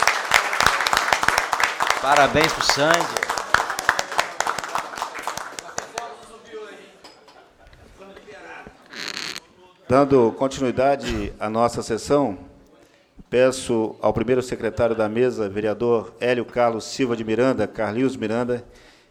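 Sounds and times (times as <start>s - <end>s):
audience applause: 0.0s - 6.1s
speech: 2.0s - 3.3s, 9.9s - 12.5s, 13.3s - 18.9s.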